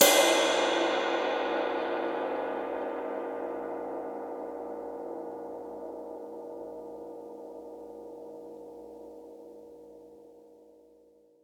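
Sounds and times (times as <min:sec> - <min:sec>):
ride cymbal: 0:00.0 - 0:07.0.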